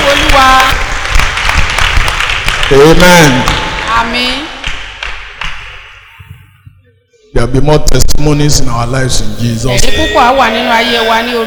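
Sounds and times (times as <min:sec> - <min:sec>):
church congregation clapping during a worship service: 0:00.0 - 0:06.1
speech: 0:02.7 - 0:04.4, 0:07.4 - 0:11.4.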